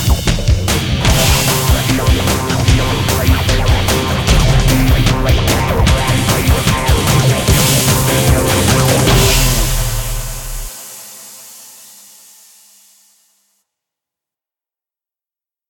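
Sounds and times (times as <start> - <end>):
fast high action rhythmic music: 0.0 - 11.1.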